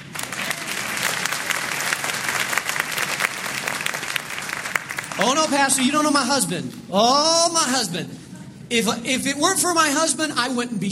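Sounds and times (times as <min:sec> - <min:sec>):
audience clapping: 0:00.0 - 0:06.1
speech: 0:05.2 - 0:10.9.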